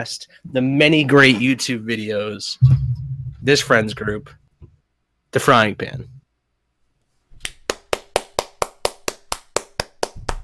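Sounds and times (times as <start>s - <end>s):
speech: 0.0s - 2.8s, 3.4s - 4.4s, 5.3s - 6.2s
single pair of hands clapping: 7.4s - 10.4s.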